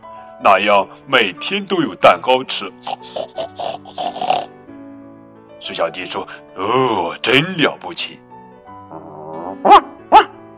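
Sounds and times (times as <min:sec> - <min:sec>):
speech: 0:00.4 - 0:04.4, 0:05.6 - 0:08.2, 0:09.6 - 0:09.8
puppy yapping: 0:09.1 - 0:10.4.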